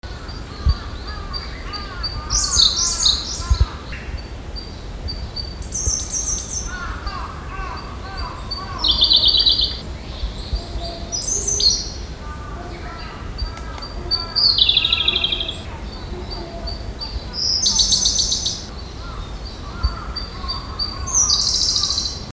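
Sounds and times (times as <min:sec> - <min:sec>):
Siberian blue robin singing: 0:00.1 - 0:22.3.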